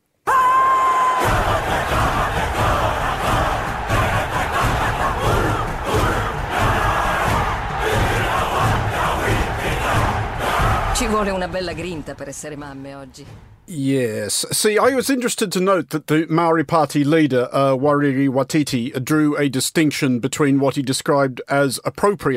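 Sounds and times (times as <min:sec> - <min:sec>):
group of women performing a haka chant: 0:01.1 - 0:12.4
speech: 0:11.0 - 0:22.3.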